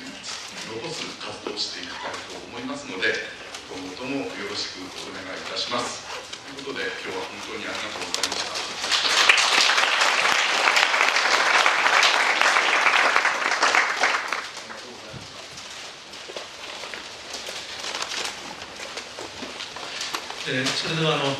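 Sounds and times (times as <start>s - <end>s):
speech: 0.7s - 9.4s, 20.5s - 21.3s
audience applause after a lecture: 8.3s - 15.0s.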